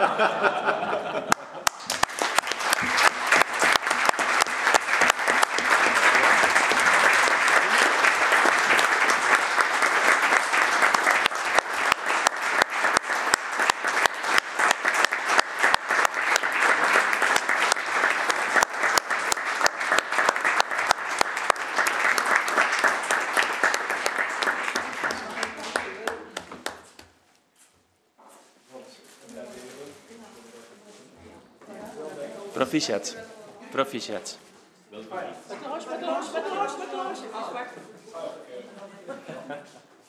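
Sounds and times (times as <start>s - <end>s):
speech: 0.0s - 1.4s, 32.8s - 34.4s
people chuckling: 0.0s - 2.0s, 39.0s - 40.0s
crowd clapping applause for a vote: 1.2s - 27.2s.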